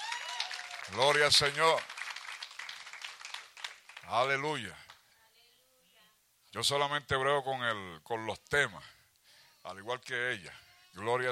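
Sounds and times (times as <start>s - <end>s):
crowd applauding: 0.0s - 4.2s
speech: 0.9s - 1.9s, 4.1s - 4.8s, 6.5s - 9.0s, 9.6s - 11.2s.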